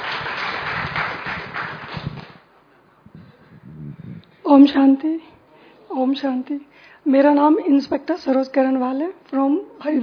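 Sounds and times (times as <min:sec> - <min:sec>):
audience applause: 0:00.0 - 0:02.4
speech: 0:04.5 - 0:05.3, 0:05.9 - 0:10.0.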